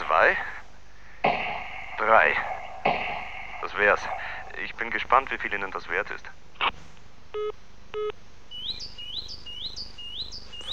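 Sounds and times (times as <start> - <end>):
birds chirping outdoors: 0.0 - 6.8, 7.4 - 10.7
speech: 0.2 - 0.6, 2.1 - 2.6, 3.8 - 8.2.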